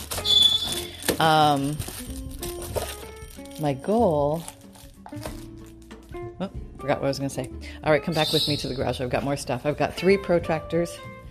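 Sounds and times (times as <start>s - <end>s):
African grey parrot whistling and squawking: 0.2s - 0.9s, 8.1s - 8.9s
speech: 1.2s - 2.2s, 3.6s - 4.6s, 6.2s - 11.2s.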